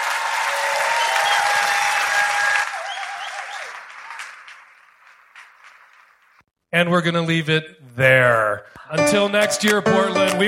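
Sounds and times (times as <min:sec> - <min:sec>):
audience applause at a live show at Revolution Hall in Portland: 0:00.0 - 0:06.4
speech: 0:06.7 - 0:10.4.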